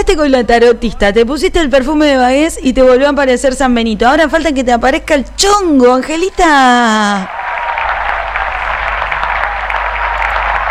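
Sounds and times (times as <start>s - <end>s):
speech: 0.0s - 7.4s
applause: 7.3s - 10.7s.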